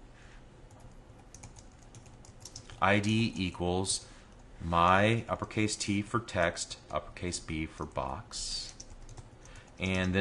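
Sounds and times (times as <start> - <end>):
computer keyboard typing HTML code: 0.7 - 2.9, 7.8 - 10.2
speech: 2.8 - 8.7, 9.8 - 10.2.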